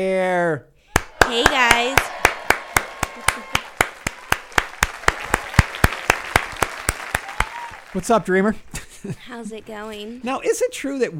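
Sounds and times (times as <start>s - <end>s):
speech: 0.0s - 0.7s, 1.3s - 2.1s, 7.9s - 11.1s
applause sound effect: 0.9s - 8.4s.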